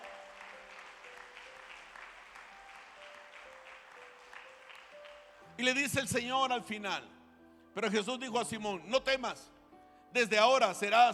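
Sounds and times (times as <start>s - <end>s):
audience applauding: 0.0s - 5.5s
speech: 5.6s - 7.2s, 7.8s - 11.1s.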